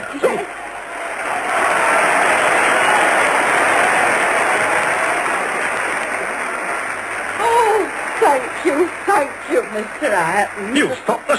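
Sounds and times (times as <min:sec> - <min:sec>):
theatre audience applause: 0:00.0 - 0:11.3
speech: 0:09.8 - 0:11.3.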